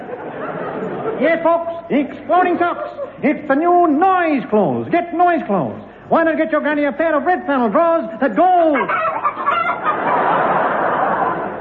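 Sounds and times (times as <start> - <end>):
speech: 1.2 - 9.2
cackling hen sound effect: 8.6 - 10.6.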